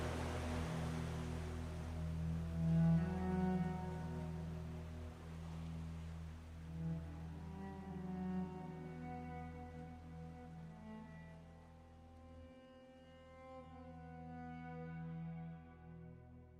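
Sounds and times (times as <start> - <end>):
sea waves: 0.0 - 12.3
cello playing sustained bowed notes: 0.0 - 16.5.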